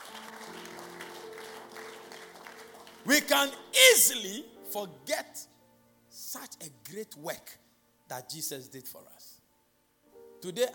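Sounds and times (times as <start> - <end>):
audience clapping: 0.0 - 3.6
speech: 3.0 - 5.5, 6.3 - 9.3, 10.4 - 10.7.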